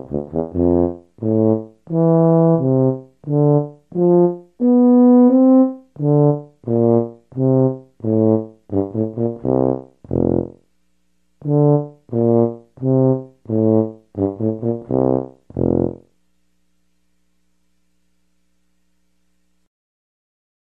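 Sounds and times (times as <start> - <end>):
tuba: 0.0 - 10.7, 11.4 - 16.2.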